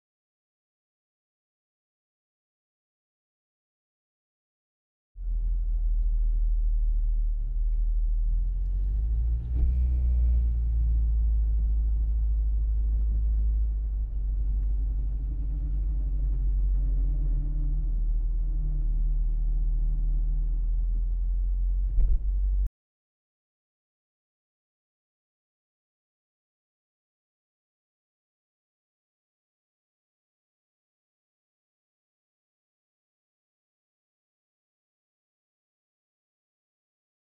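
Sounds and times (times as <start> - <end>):
1929 Volvo PV4 starting, driving slowly and stopping, heard from interior: 5.2 - 22.7.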